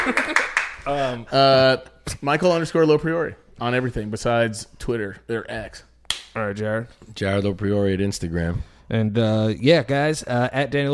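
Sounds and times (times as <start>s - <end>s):
hand claps: 0.0s - 0.9s, 6.1s - 6.4s
speech: 0.0s - 10.9s.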